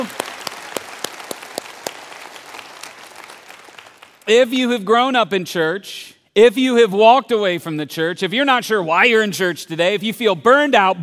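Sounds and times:
speech: 0:00.0 - 0:00.2, 0:04.3 - 0:11.0
church audience clapping: 0:00.0 - 0:04.4.

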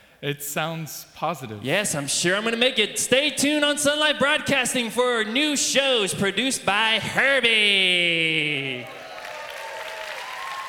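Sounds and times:
speech: 0:00.2 - 0:09.0
applause: 0:08.7 - 0:10.6.

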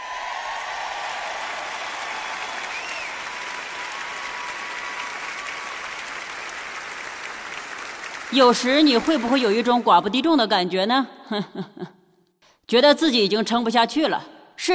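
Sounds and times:
faint cheers: 0:00.0 - 0:06.8
audience applause: 0:00.0 - 0:10.2
speech: 0:08.3 - 0:12.0, 0:12.7 - 0:14.7.

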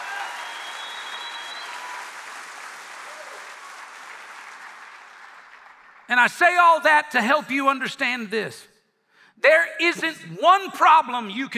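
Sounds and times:
audience clapping hands: 0:00.0 - 0:06.7
speech: 0:06.1 - 0:08.7, 0:09.4 - 0:11.5.

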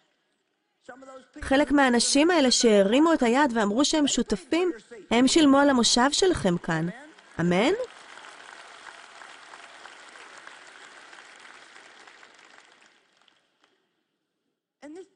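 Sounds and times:
speech: 0:00.8 - 0:07.9
large audience applauding and cheering: 0:06.9 - 0:13.8.

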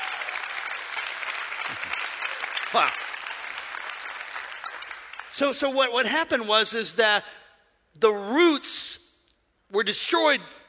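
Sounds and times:
church congregation applauding during a sermon: 0:00.0 - 0:05.4
speech: 0:01.7 - 0:02.0, 0:02.7 - 0:03.1, 0:05.4 - 0:07.4, 0:08.0 - 0:08.9, 0:09.7 - 0:10.6.

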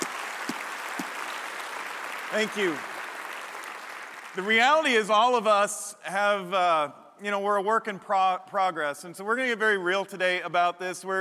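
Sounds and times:
crowd applause: 0:00.0 - 0:04.8
speech: 0:02.3 - 0:02.9, 0:04.4 - 0:11.1.

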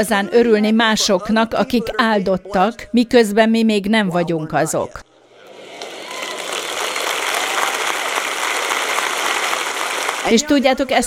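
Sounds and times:
speech: 0:00.0 - 0:05.1, 0:10.3 - 0:11.0
audience applause: 0:05.4 - 0:10.8.

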